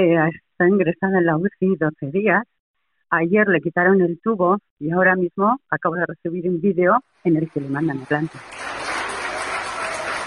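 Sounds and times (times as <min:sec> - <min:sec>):
speech: 0:00.0 - 0:02.5, 0:03.1 - 0:08.8
hospital staff applauding patient leaving ICU: 0:07.8 - 0:10.2.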